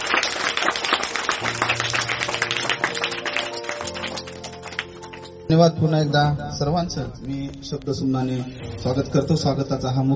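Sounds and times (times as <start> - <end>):
audience applauding to welcome an honoured guest at a ceremony: 0.0 - 5.4
speech: 5.5 - 10.1.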